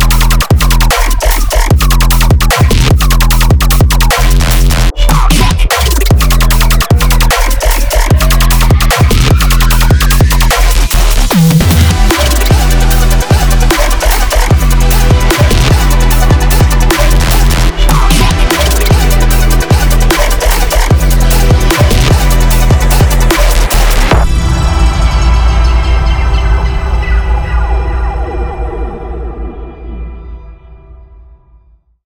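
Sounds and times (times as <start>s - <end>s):
heavy bass: 0.0s - 31.1s.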